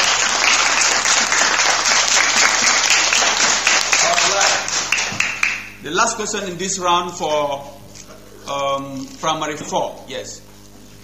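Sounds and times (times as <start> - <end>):
applause for the quiz master at a school quiz: 0.0 - 5.8
speech: 6.1 - 7.8, 8.5 - 10.5.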